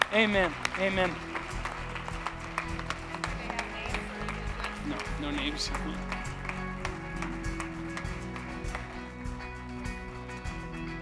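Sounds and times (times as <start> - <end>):
audience applause: 0.0 - 10.5
speech: 0.1 - 1.3, 4.9 - 6.3.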